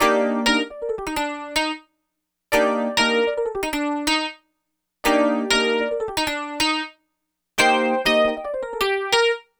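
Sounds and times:
electric piano: 0.0s - 1.8s, 2.6s - 4.3s, 5.1s - 6.8s, 7.6s - 9.4s.

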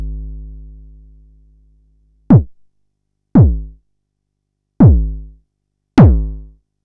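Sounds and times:
Jomox Xbase09 drum machine: 2.3s - 2.7s, 3.4s - 3.7s, 4.8s - 5.3s, 6.0s - 6.4s.

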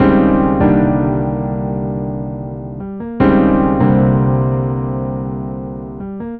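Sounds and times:
keyboard music: 0.0s - 6.3s.

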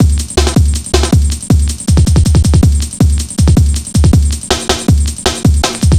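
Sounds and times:
drum loop: 0.0s - 5.9s.

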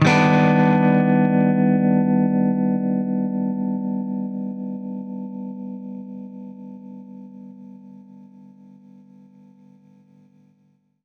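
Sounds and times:
baritone guitar chord Cmin9 major 7: 0.0s - 4.2s.

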